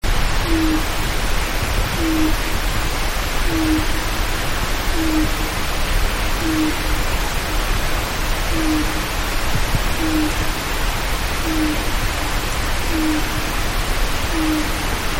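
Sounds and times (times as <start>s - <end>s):
steady hiss: 0.0s - 15.1s
Japanese night heron deep hollow hoots: 0.4s - 0.9s, 2.0s - 2.4s, 3.5s - 4.0s, 4.9s - 5.5s, 6.4s - 6.8s, 8.5s - 9.0s, 10.0s - 10.4s, 11.4s - 11.8s, 12.9s - 13.4s, 14.3s - 14.9s.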